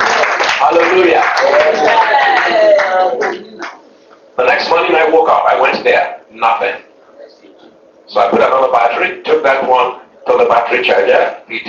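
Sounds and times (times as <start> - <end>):
church congregation clapping as an offering to Jesus: 0.0 - 4.0
speech: 5.1 - 6.9, 8.1 - 11.6.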